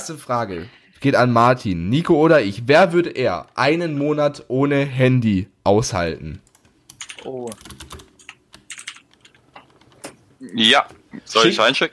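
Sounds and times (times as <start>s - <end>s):
speech: 0.0s - 6.4s, 7.2s - 7.8s, 10.4s - 11.9s
rapid computer keyboard typing: 6.3s - 10.2s.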